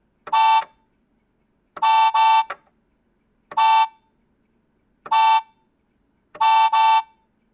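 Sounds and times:
toy car horn: 0:00.3 - 0:00.8, 0:01.8 - 0:02.6, 0:03.5 - 0:04.1, 0:05.1 - 0:05.6, 0:06.4 - 0:07.3.

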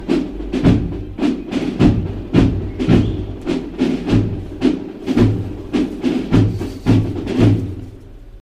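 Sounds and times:
drums: 0:00.0 - 0:08.4.

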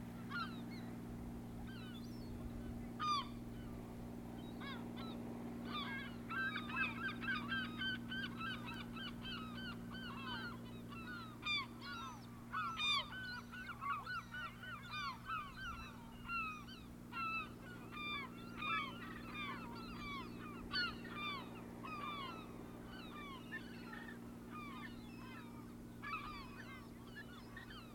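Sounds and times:
gulls calling with sharp harmonic yelps: 0:00.0 - 0:27.9.

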